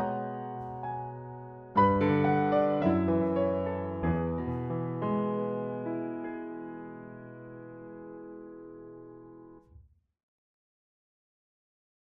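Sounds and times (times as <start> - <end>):
black grand piano: 0.0 - 9.7.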